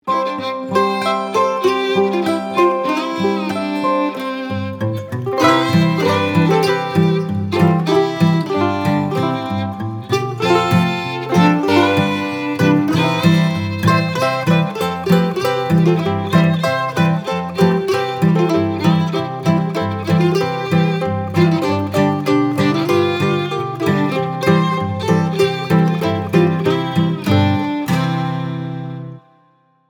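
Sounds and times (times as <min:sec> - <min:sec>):
bluegrass Christmas carol: 0:00.0 - 0:29.3.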